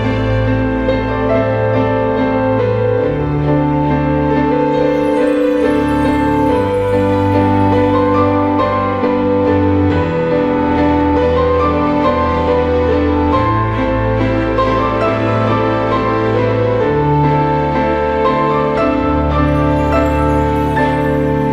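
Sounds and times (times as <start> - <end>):
piano note G: 0.0 - 21.5.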